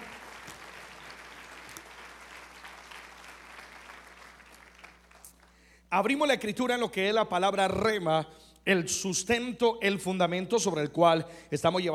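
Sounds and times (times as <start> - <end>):
audience applause: 0.0 - 5.4
speech: 5.9 - 11.9.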